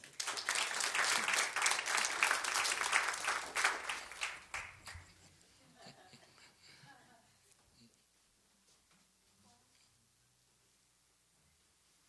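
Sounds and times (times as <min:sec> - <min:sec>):
audience applauding: 0:00.0 - 0:05.1.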